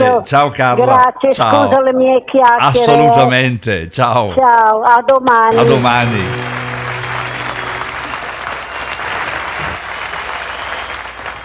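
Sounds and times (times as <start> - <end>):
speech: 0.0 - 6.6
applause: 5.5 - 11.4.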